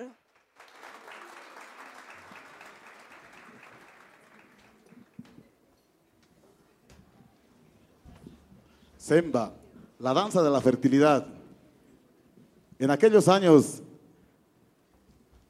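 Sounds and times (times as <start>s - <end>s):
warm audience applause: 0.0s - 5.4s
speech: 9.0s - 11.4s, 12.8s - 13.8s.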